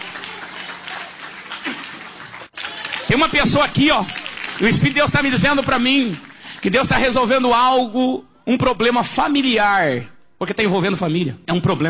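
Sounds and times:
church congregation clapping for Jesus: 0:00.0 - 0:07.6
speech: 0:03.1 - 0:11.8.

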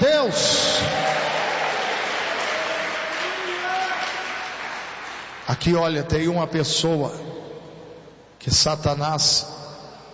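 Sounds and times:
speech: 0:00.2 - 0:00.5, 0:05.6 - 0:07.4, 0:08.4 - 0:09.6
audience applauding: 0:00.8 - 0:05.5.

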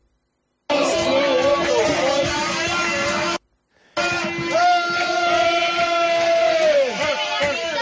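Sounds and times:
fans cheering and chanting as team bus arrives: 0:00.7 - 0:07.8.

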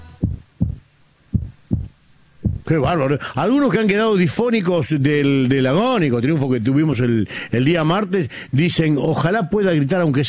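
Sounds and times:
heartbeat: 0:00.0 - 0:02.7
speech: 0:02.7 - 0:10.2.

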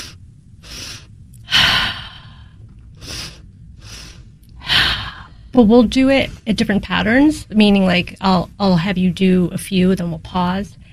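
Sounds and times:
deep deliberate breathing demonstrating the physiologic sigh: 0:00.0 - 0:05.6
speech: 0:05.6 - 0:10.8.

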